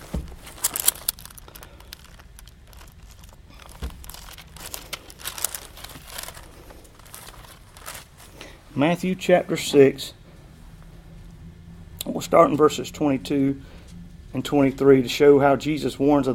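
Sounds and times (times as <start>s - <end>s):
Bible pages being turned: 0.0s - 8.5s
speech: 8.8s - 10.2s, 12.3s - 13.7s, 14.3s - 16.3s.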